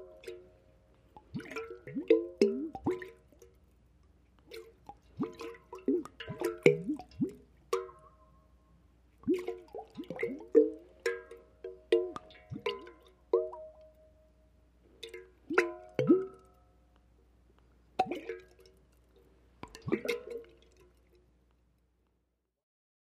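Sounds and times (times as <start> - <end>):
water bubbling: 1.2 - 3.2, 4.7 - 8.0, 9.3 - 13.8, 15.4 - 16.4, 19.7 - 20.9.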